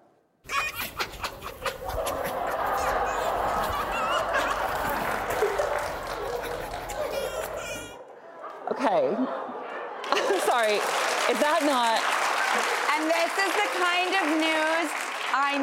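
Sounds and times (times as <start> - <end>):
foxes giggling: 0.5 - 8.0
speech: 8.8 - 9.4, 10.6 - 15.6.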